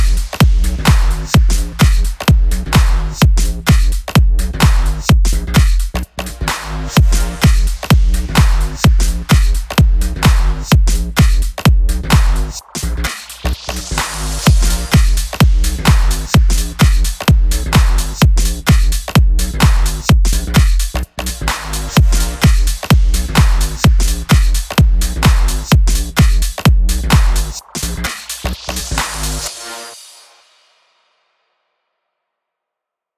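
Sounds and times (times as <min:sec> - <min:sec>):
future house music bed: 0:00.0 - 0:30.4.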